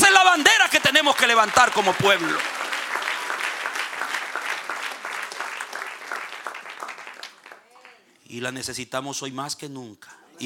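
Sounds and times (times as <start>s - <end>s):
audience applause: 0.0s - 8.1s
speech: 1.4s - 2.7s, 8.3s - 10.4s.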